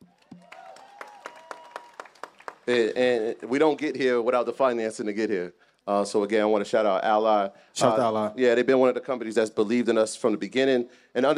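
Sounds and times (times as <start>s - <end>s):
audience applause: 0.1s - 3.2s
speech: 2.7s - 11.3s.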